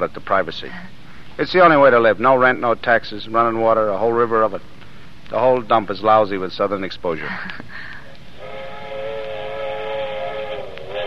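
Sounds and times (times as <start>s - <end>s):
speech: 0.0s - 7.9s
train whistle blowing: 8.4s - 11.0s.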